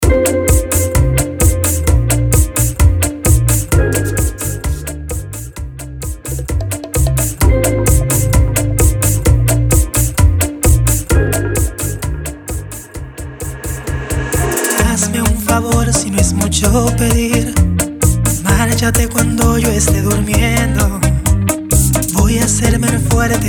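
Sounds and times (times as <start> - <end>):
intro outro music break at 130 BPM: 0.0 - 23.4.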